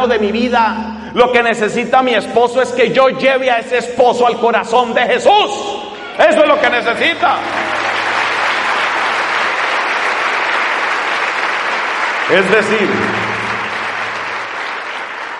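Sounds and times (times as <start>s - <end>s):
speech: 0.0s - 7.8s, 12.3s - 13.2s
audience applause: 6.3s - 15.3s.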